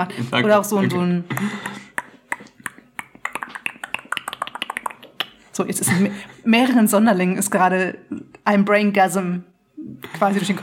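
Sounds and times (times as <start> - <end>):
speech: 0.0 - 1.8, 5.6 - 10.6
lip smacking: 1.4 - 5.5
tongue clicking: 1.7 - 5.4.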